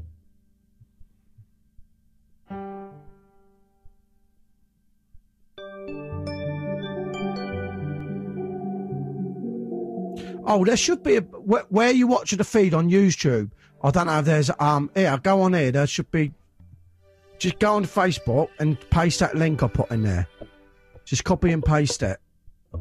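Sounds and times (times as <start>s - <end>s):
sustained layered electronic chord: 5.6s - 13.0s
bright electronic note ringing out with reverb: 6.3s - 12.0s
speech: 10.5s - 16.4s, 17.4s - 20.3s, 21.1s - 22.7s.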